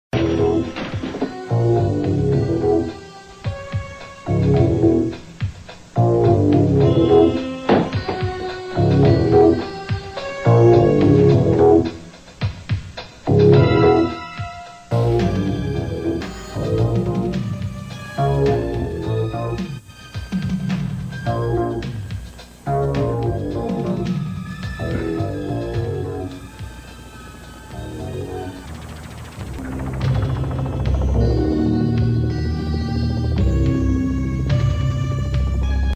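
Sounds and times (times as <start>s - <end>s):
suspense music: 0.2s - 12.4s, 13.2s - 35.9s.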